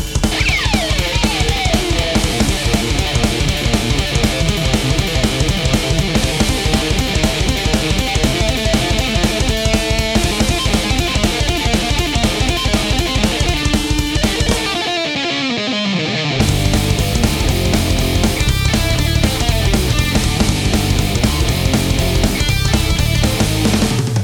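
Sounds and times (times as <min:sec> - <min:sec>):
instrumental music: 0:00.2 - 0:24.2.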